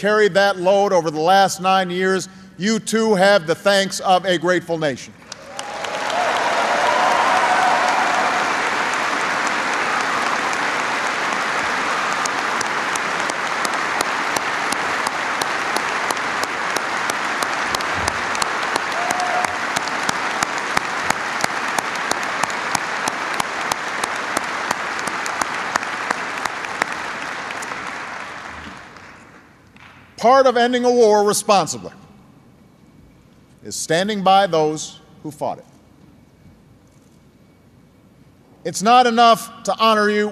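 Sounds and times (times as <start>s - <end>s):
speech: 0.0s - 5.2s, 30.4s - 32.0s, 33.6s - 35.7s, 38.6s - 40.3s
large audience applauding: 5.3s - 29.4s.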